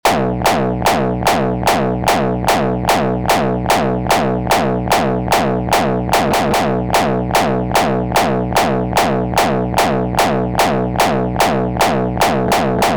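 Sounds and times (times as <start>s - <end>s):
wet bass: 0.0s - 12.9s.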